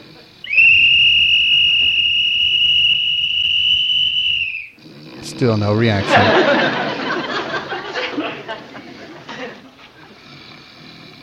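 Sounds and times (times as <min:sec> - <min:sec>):
whistle blast: 0:00.4 - 0:04.8
speech: 0:05.4 - 0:06.5
laughter: 0:05.8 - 0:10.2.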